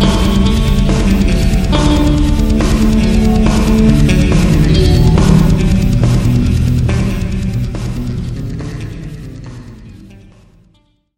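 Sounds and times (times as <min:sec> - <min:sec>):
prelude in G major: 0:00.0 - 0:10.8.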